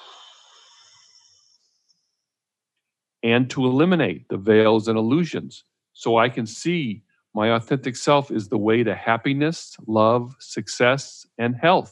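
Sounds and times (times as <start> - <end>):
deep breath blown out into a trash can: 0.0 - 1.0
speech: 3.2 - 11.9.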